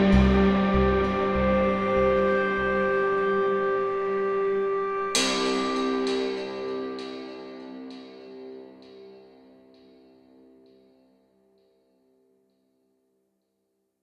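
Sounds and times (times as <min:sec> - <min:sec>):
santur: 0:00.0 - 0:10.9.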